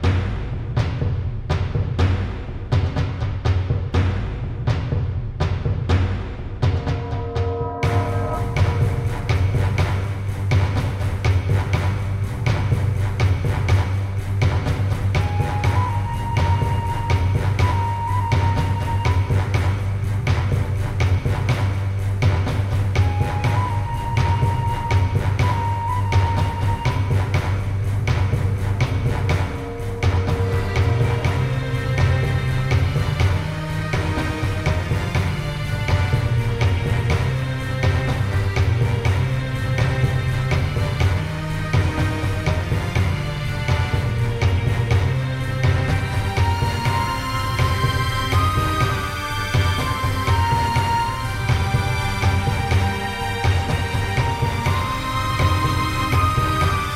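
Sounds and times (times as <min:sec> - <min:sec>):
music: 0:00.0 - 0:56.9.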